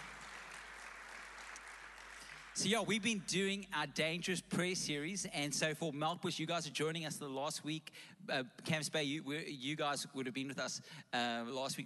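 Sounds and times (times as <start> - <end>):
crowd clapping: 0.0 - 2.7
speech: 2.6 - 11.8.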